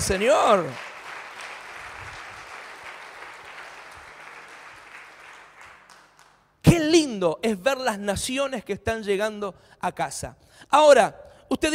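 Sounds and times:
speech: 0.0 - 0.9, 6.7 - 11.7
crowd clapping: 0.0 - 6.6.

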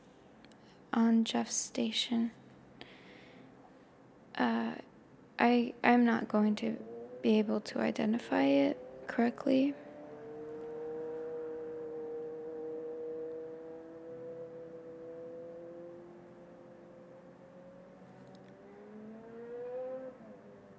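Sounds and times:
speech: 1.0 - 2.4, 4.4 - 9.8
car passing by: 6.8 - 20.7.

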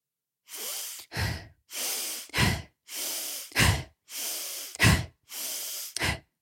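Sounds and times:
deep breaths in a breathing exercise: 0.5 - 6.3.

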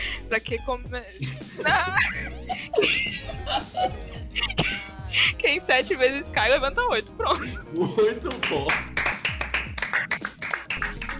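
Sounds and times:
speech: 0.3 - 8.9
laughter: 1.1 - 5.4, 7.2 - 8.8
hands clapping: 8.0 - 11.1.

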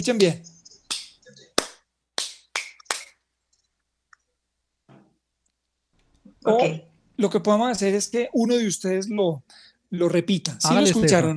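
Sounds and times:
speech: 0.0 - 0.5, 6.4 - 11.3
rhythm clapped by hand: 0.9 - 3.2.

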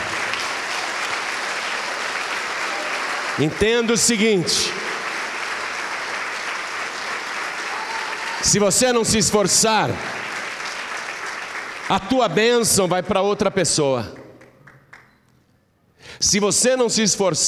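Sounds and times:
audience applauding: 0.0 - 12.8, 14.2 - 15.3
speech: 3.4 - 4.8, 8.4 - 10.2, 11.9 - 14.2, 16.2 - 17.4.

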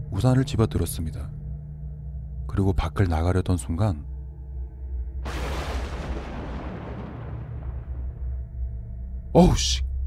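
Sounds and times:
speech: 0.2 - 1.4, 2.5 - 4.1, 9.4 - 9.9
loud thunderclap: 5.3 - 8.2.

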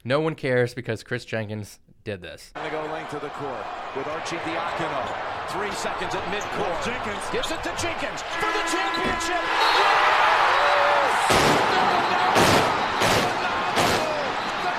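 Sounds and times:
speech: 0.0 - 10.0
fireworks going off in an arena: 11.2 - 14.7.

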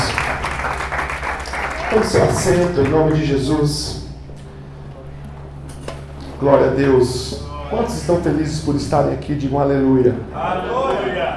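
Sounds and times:
audience applause: 0.0 - 3.6
low hum: 0.0 - 11.3
speech: 1.9 - 4.0, 6.4 - 11.3.

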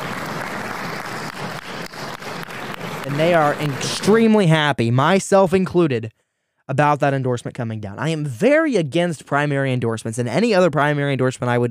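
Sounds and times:
small crowd applauding in meeting room: 0.0 - 4.4
speech: 3.1 - 11.7.

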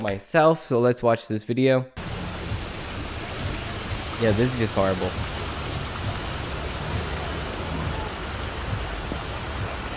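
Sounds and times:
speech: 0.0 - 2.0, 4.2 - 5.3
rushing floodwater in Palm Springs: 2.0 - 9.9
steady rain in Palm Springs: 2.0 - 9.9.

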